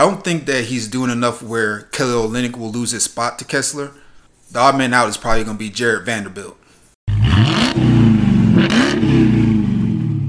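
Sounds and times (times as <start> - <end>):
speech: 0.0 - 6.6
V8 engine revving then idling: 7.1 - 10.2.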